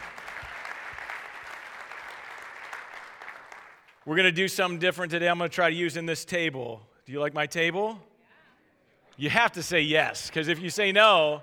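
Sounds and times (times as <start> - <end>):
audience applauding: 0.0 - 3.9
speech: 4.0 - 8.1, 9.2 - 11.4.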